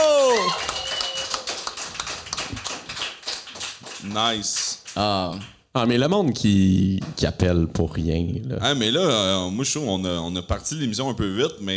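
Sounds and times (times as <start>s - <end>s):
applause: 0.0s - 5.6s
speech: 4.1s - 11.7s.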